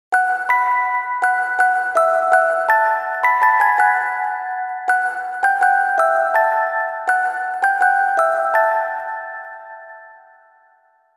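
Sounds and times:
music box: 0.1 - 11.1.

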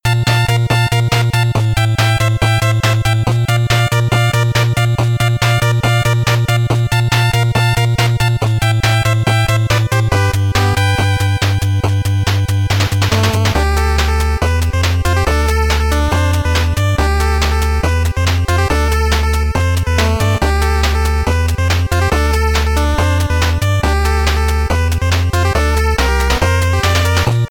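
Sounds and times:
8-bit background music: 0.0 - 27.4.

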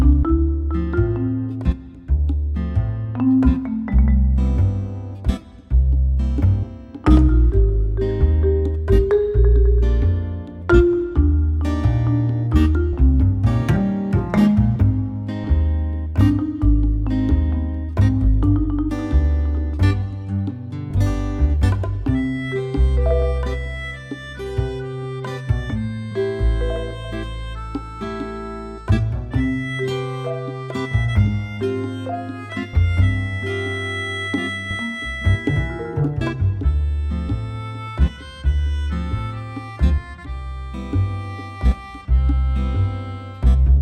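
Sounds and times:
background music loop: 0.0 - 43.8.

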